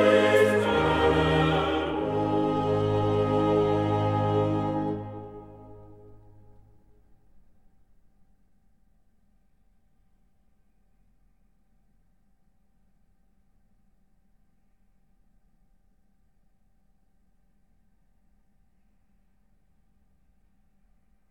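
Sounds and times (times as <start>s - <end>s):
choir singing a chorale: 0.0s - 6.6s.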